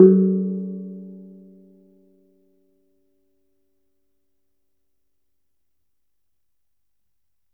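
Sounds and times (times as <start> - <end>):
high gamelan gong in F sharp 3: 0.0 - 1.3.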